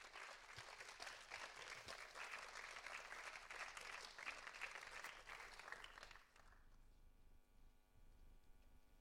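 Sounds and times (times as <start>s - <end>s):
audience applause: 0.0s - 6.6s.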